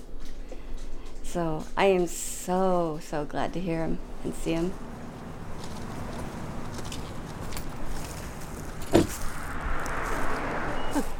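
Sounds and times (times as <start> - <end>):
speech: 1.3 - 5.0
car driving down a quiet residential street: 3.0 - 11.1
brief knock: 8.9 - 9.2.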